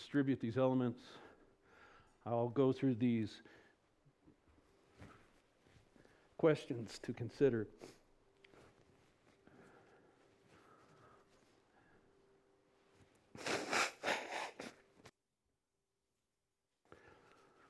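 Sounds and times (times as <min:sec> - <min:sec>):
speech: 0:00.1 - 0:01.3, 0:02.2 - 0:03.6, 0:06.4 - 0:08.0
nose blowing through the sound system: 0:13.3 - 0:14.9.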